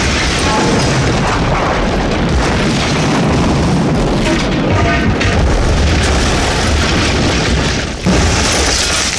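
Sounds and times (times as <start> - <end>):
gas pumps exploding in a massive roaring blast: 0.0 - 9.1.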